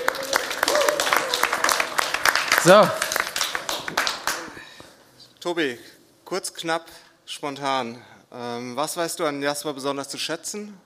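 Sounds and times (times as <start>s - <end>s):
audience applause: 0.0s - 4.7s
speech: 2.6s - 3.0s, 5.4s - 10.8s.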